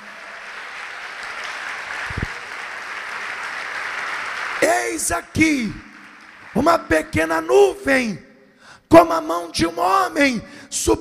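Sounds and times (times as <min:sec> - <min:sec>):
audience applauding: 0:00.0 - 0:07.0
speech: 0:04.8 - 0:05.9, 0:06.6 - 0:08.3, 0:08.9 - 0:10.9.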